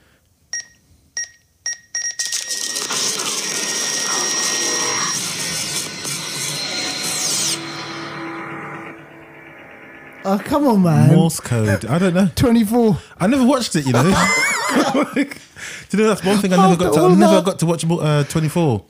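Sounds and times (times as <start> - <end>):
fax machine going haywire, beeping and screeching: 2.1 - 11.1
speech: 10.3 - 18.8
laughter: 13.8 - 17.5.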